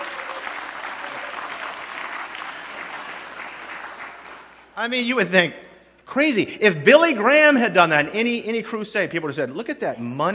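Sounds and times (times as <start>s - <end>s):
crowd clapping: 0.0s - 4.8s
speech: 4.8s - 10.3s.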